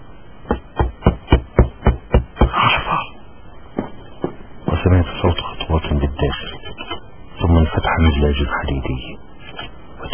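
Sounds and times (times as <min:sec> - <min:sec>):
faint hiss: 0:00.0 - 0:10.1
knocking on a door: 0:00.5 - 0:02.5.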